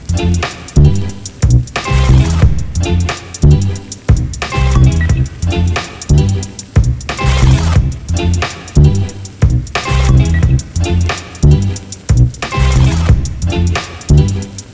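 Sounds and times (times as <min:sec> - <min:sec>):
circuit beat: 0:00.0 - 0:14.7.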